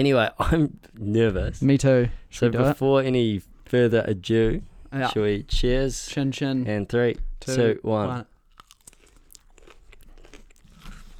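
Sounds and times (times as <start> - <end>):
speech: 0.0 - 8.3
person crunching and chewing spicy food: 8.4 - 11.1.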